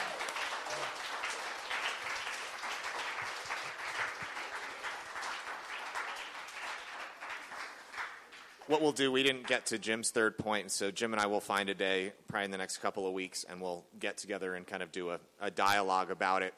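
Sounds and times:
audience applause: 0.0s - 8.8s
speech: 8.7s - 16.5s.

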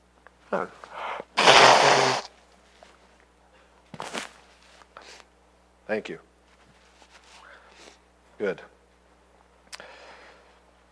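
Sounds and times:
speech: 0.5s - 1.0s, 5.9s - 6.3s, 8.4s - 8.7s
person blowing nose: 1.3s - 2.3s.

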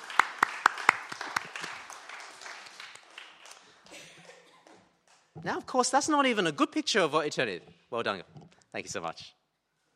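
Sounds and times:
small audience applause: 0.0s - 3.8s
speech: 5.4s - 9.4s.

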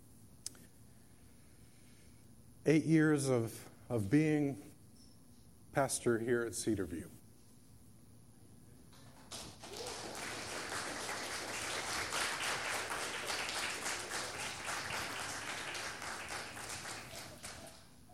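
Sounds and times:
speech: 2.6s - 4.7s, 5.8s - 7.2s
audience clapping: 8.9s - 18.0s.

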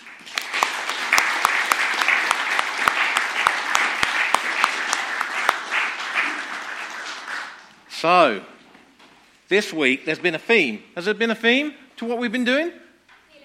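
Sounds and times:
audience clapping: 0.0s - 7.9s
speech: 8.0s - 8.5s, 9.5s - 12.8s.

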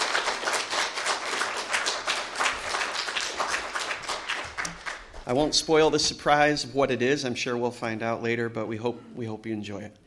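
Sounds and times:
round of applause: 0.0s - 5.2s
speech: 5.3s - 10.0s.

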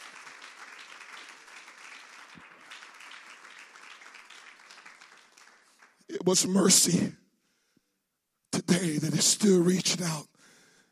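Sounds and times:
large crowd applauding: 0.0s - 6.9s
speech: 6.1s - 7.2s, 9.2s - 10.3s.

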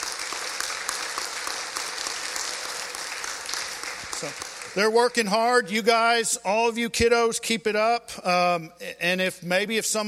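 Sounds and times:
audience applause: 0.0s - 4.9s
speech: 4.2s - 10.0s.

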